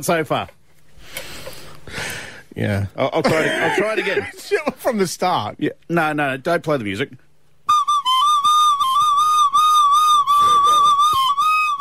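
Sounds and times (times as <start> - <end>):
speech: 0.0 - 0.6, 2.6 - 7.2
laughter: 3.2 - 4.8
whistle blown hard: 7.7 - 11.7.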